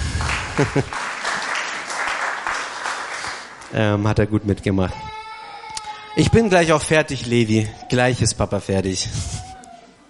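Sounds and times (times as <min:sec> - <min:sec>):
audience applause: 0:00.0 - 0:03.7
speech: 0:00.6 - 0:01.0, 0:03.7 - 0:05.1, 0:06.2 - 0:09.5.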